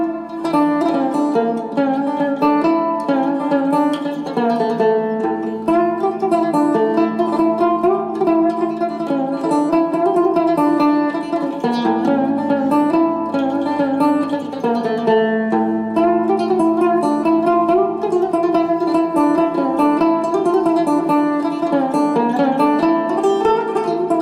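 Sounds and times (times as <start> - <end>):
cumbus solo on fretless banjo: 0.0 - 24.2.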